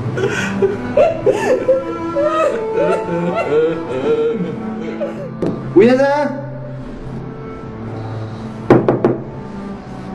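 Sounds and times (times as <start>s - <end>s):
speech: 0.2s - 1.9s
laughter: 0.2s - 5.3s
knocking on a door: 5.4s - 5.6s, 8.7s - 9.3s.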